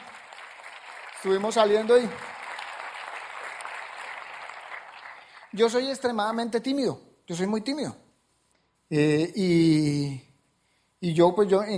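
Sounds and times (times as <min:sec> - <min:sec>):
faint audience applause for dinner hosts: 0:00.0 - 0:06.0
speech: 0:01.2 - 0:02.3, 0:05.6 - 0:08.0, 0:08.9 - 0:10.3, 0:11.0 - 0:11.7.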